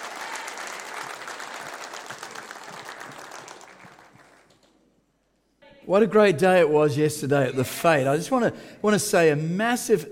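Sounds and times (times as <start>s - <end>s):
audience applause welcoming a pastor up to preach: 0.0s - 5.1s
speech: 5.9s - 10.0s.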